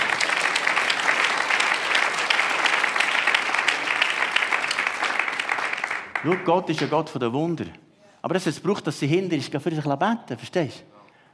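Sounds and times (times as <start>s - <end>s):
audience applause: 0.0s - 6.9s
speech: 6.2s - 10.9s.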